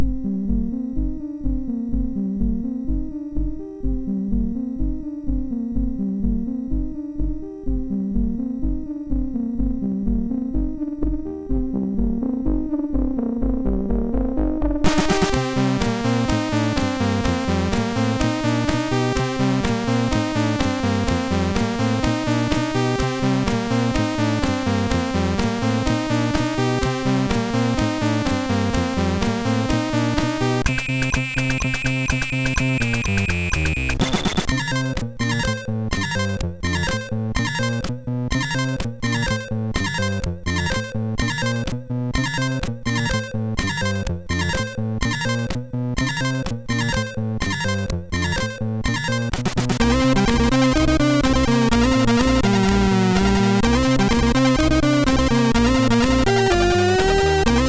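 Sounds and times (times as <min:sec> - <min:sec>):
disco on SID MOS6581R2 chip: 0:00.0 - 0:57.6.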